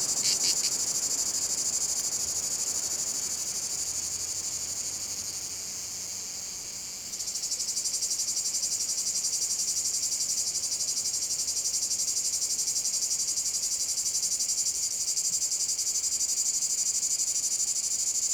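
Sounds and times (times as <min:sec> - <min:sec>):
cicada chorus in a field in France: 0:00.0 - 0:18.3.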